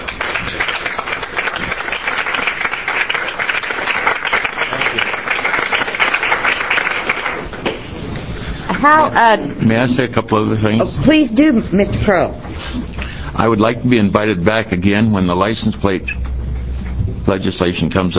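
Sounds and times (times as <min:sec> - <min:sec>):
committee audience applause in a standing ovation: 0:00.0 - 0:07.9
speech: 0:08.8 - 0:16.2, 0:17.2 - 0:18.1.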